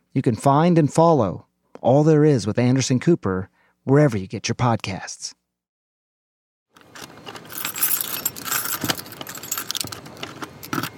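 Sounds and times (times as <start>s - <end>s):
speech: 0.2s - 5.4s
keys jangling in apartment door locks: 6.8s - 10.9s.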